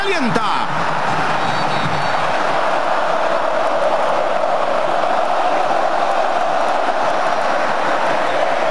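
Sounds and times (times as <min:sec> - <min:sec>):
Colombian football fans roaring and cheering in a stadium: 0:00.0 - 0:08.6.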